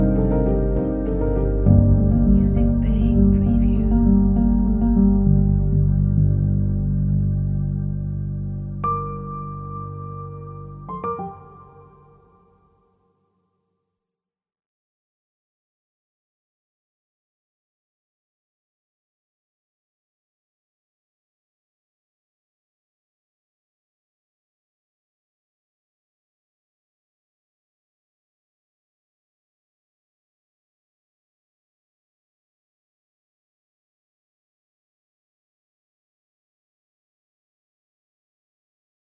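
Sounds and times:
ambient carol arrangement: 0:00.0 - 0:12.9.

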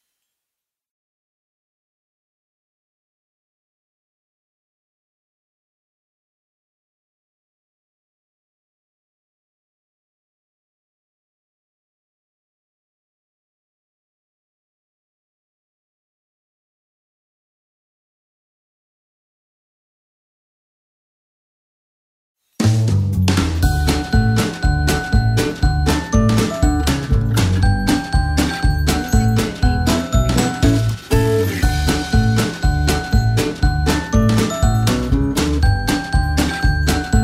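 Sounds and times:
Christmas song: 0:23.5 - 0:37.2.

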